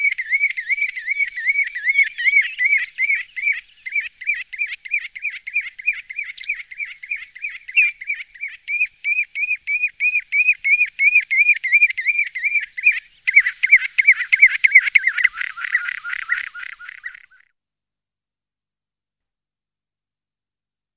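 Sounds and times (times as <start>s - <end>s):
common ringed plover calls: 0.0s - 17.4s.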